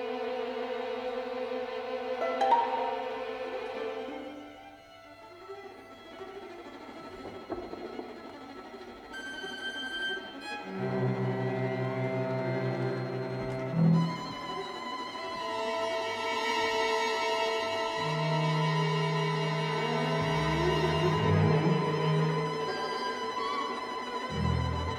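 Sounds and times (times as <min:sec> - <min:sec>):
orchestra playing: 0:00.2 - 0:04.5, 0:10.1 - 0:24.9.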